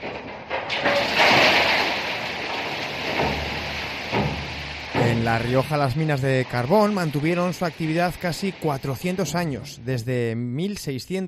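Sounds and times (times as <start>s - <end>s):
metal mine cart tipped over manually: 0.0s - 9.8s
speech: 5.2s - 11.2s.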